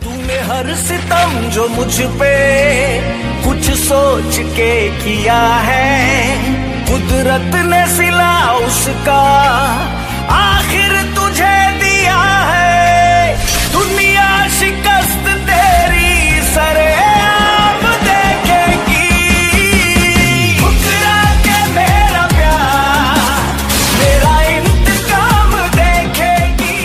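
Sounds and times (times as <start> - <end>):
sad song ringtone: 0.0 - 26.8.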